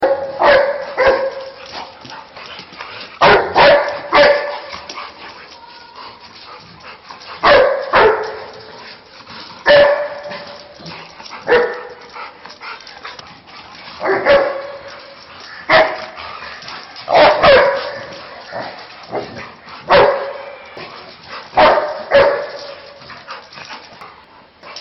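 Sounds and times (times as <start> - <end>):
dog barking at a cat: 0.0 - 1.6, 3.2 - 4.7, 7.4 - 8.5, 9.7 - 10.4, 11.5 - 11.9, 14.0 - 14.8, 15.7 - 16.1, 17.1 - 18.1, 19.9 - 20.6, 21.6 - 22.6.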